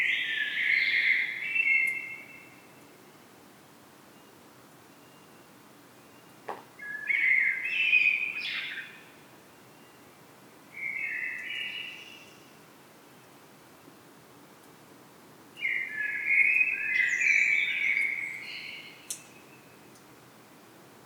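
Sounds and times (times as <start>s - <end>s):
common blackbird singing: 0.0s - 2.4s, 6.8s - 9.0s, 15.6s - 19.6s.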